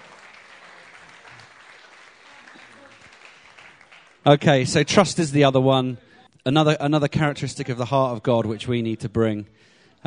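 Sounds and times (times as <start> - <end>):
audience applause for volunteers: 0.0 - 4.5
speech: 4.2 - 10.0.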